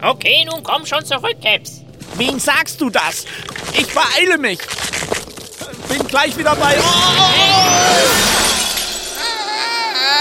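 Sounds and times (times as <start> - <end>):
speech: 0.0 - 5.1, 5.9 - 8.4
glass ball dropping and shattering: 4.6 - 9.4
quieter ringing tones: 6.5 - 9.4.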